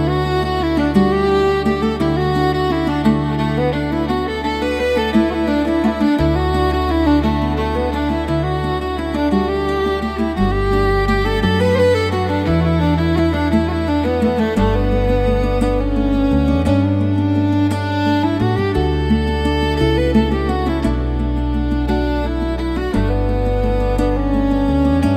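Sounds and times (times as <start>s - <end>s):
calm instrumental music: 0.0s - 25.1s.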